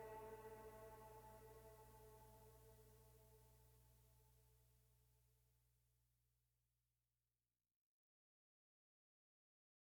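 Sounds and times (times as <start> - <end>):
string drone: 0.0 - 2.4.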